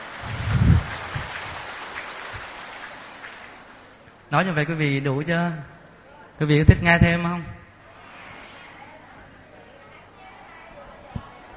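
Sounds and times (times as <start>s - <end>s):
audience applause: 0.0s - 4.0s
speech: 4.3s - 5.8s, 6.4s - 7.6s.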